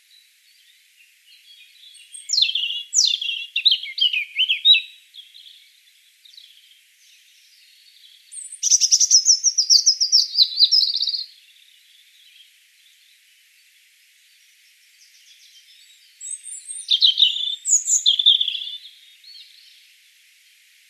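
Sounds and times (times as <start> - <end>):
European robin thin whistles and trills: 1.4 - 5.5, 8.3 - 11.3, 14.9 - 19.8.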